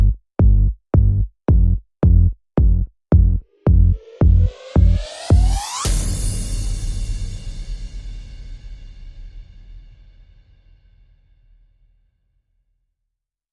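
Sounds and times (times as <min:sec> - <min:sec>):
bass: 0:00.0 - 0:07.6
drums: 0:00.4 - 0:10.8.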